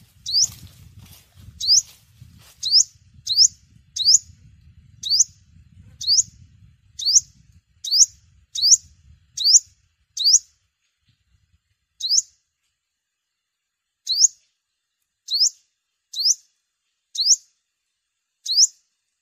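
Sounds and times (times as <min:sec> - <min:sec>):
sunbird high upward-sweeping chirps: 0:00.1 - 0:00.6, 0:01.6 - 0:10.6, 0:11.9 - 0:12.4, 0:14.0 - 0:14.6, 0:15.2 - 0:17.6, 0:18.4 - 0:19.0.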